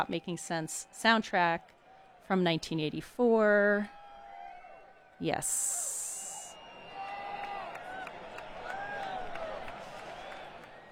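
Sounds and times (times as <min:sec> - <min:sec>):
live concert crowd cheering: 0:00.0 - 0:02.3, 0:03.9 - 0:10.9
speech: 0:00.0 - 0:04.0, 0:05.2 - 0:06.1.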